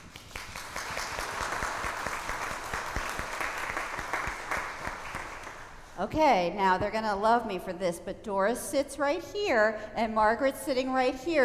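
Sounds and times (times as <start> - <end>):
audience applause: 0.0 - 5.7
speech: 6.0 - 11.4.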